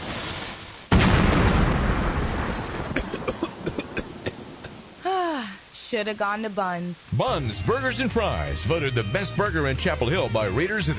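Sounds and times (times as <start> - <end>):
gas grill exploding as it is fired up: 0.0 - 4.7
crackles and pops: 0.0 - 8.9
speech: 5.9 - 10.9.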